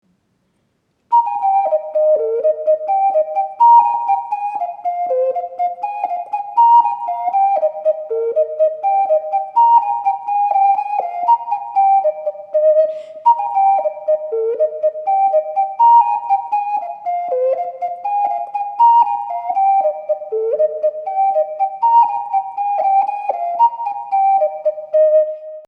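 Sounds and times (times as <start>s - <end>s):
ocarina playing a folk tune: 1.1s - 25.6s.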